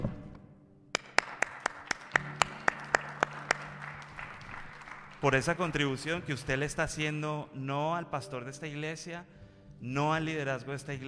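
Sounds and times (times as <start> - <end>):
audience clapping: 0.9 - 6.6
speech: 5.2 - 11.0.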